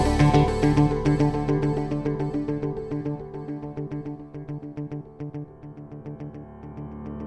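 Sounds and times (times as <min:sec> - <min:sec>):
corporate background music loop: 0:00.0 - 0:04.9.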